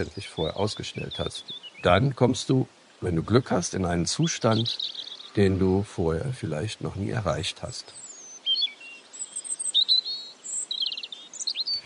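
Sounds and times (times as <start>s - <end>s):
speech: 0.0s - 8.0s
birds chirping and singing outdoors: 0.0s - 11.8s.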